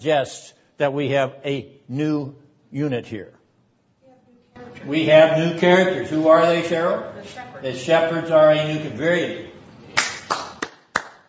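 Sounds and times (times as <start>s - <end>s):
speech: 0.0s - 3.4s, 4.8s - 9.5s
hand claps: 9.9s - 11.2s.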